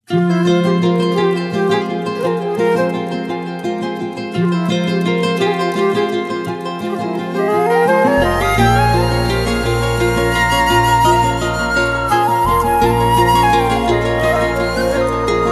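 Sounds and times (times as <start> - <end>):
flute: 0.1 - 15.5.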